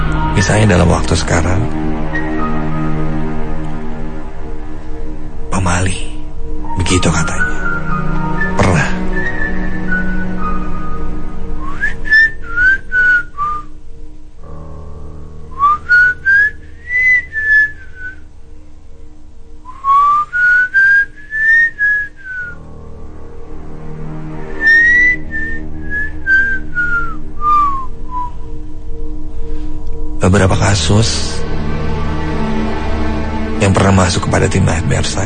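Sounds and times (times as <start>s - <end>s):
faint low drone: 0.0s - 35.2s
speech: 0.4s - 1.9s, 5.6s - 6.1s, 6.8s - 7.6s, 30.9s - 31.4s, 33.6s - 35.2s
person whistling at night: 7.4s - 13.7s, 15.5s - 18.3s, 19.7s - 22.6s, 24.6s - 28.6s.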